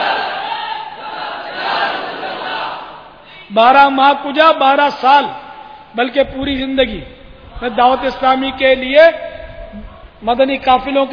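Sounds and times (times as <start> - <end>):
crowd chanting a religious slogan at an Islamic gathering: 0.0 - 3.2
speech: 3.5 - 11.1.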